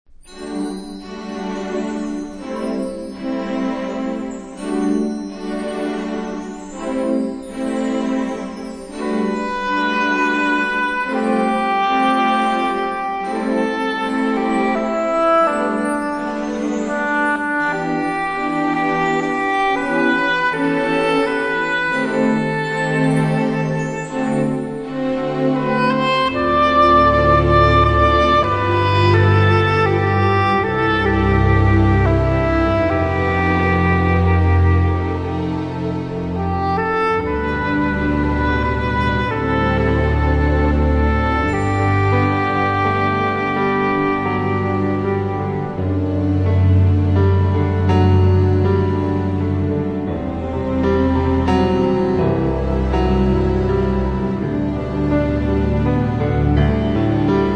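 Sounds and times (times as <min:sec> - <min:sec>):
orchestra: 0:00.1 - 0:57.5.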